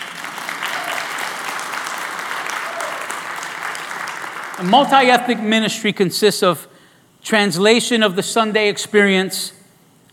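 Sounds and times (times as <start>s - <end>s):
audience applause: 0.0s - 5.2s
speech: 4.6s - 9.6s.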